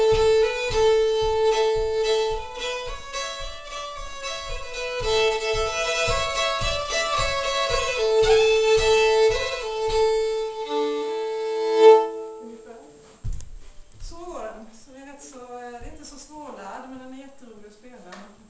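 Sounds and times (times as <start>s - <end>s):
polska folk tune: 0.0s - 12.6s.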